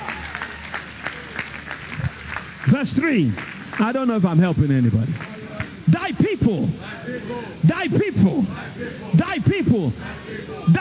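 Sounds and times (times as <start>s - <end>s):
church congregation clapping as an offering: 0.0s - 6.6s
speech: 2.6s - 5.3s, 5.9s - 10.7s.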